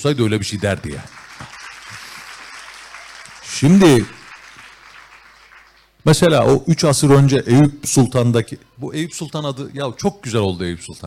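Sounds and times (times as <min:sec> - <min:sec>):
speech: 0:00.0 - 0:01.5, 0:03.6 - 0:04.2, 0:06.0 - 0:11.0
audience applause: 0:00.2 - 0:06.0.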